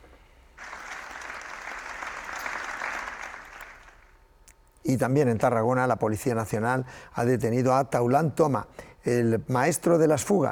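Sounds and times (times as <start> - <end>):
applause after minute of silence: 0.6 - 4.1
speech: 4.8 - 10.5.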